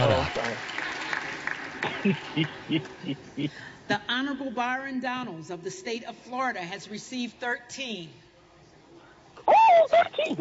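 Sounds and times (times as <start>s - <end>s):
audience clapping: 0.0s - 3.2s
laughter: 1.8s - 3.5s, 9.6s - 10.3s
speech: 2.0s - 8.2s, 9.9s - 10.3s.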